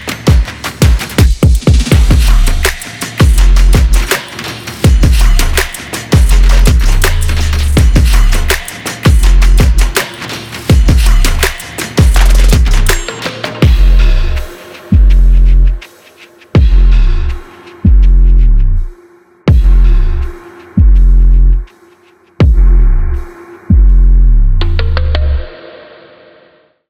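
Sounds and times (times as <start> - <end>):
vlog background beat: 0.0 - 26.4.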